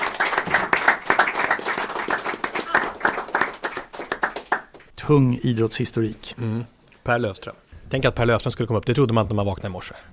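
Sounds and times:
small group applauding: 0:00.0 - 0:04.9
speech: 0:05.1 - 0:10.1.

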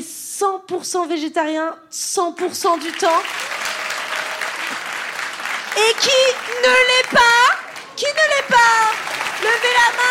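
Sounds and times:
speech: 0:00.4 - 0:03.5, 0:05.8 - 0:10.1
audience applause at a live comedy show: 0:02.9 - 0:10.1.

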